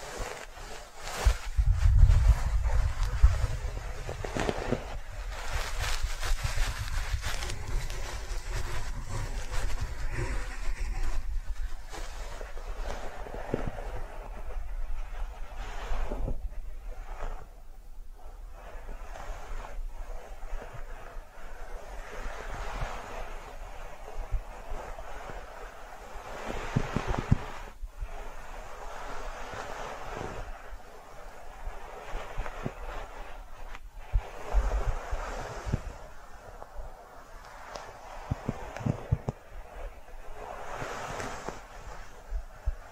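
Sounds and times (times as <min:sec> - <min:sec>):
brushing strokes: 0:00.0 - 0:17.6, 0:18.2 - 0:42.9
low rumble: 0:01.4 - 0:15.1.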